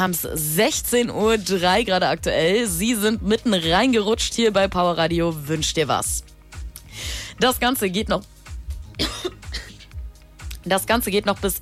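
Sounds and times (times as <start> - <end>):
speech: 0.0 - 6.3, 7.0 - 8.3, 10.6 - 11.5
radio presenter coughing after choking: 8.9 - 10.0.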